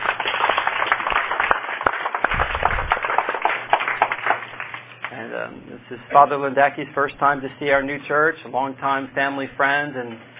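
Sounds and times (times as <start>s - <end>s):
audience applause: 0.0s - 5.0s
speech: 5.4s - 10.3s.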